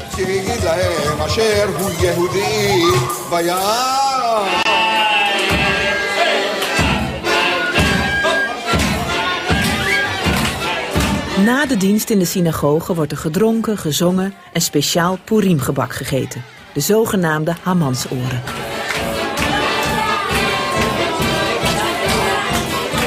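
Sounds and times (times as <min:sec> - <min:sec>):
drumming tables: 0:00.0 - 0:03.3, 0:06.7 - 0:11.9, 0:18.4 - 0:23.0
crowd shouting and jeering: 0:00.0 - 0:12.2, 0:14.1 - 0:23.0
speech: 0:00.2 - 0:04.8, 0:11.4 - 0:18.9.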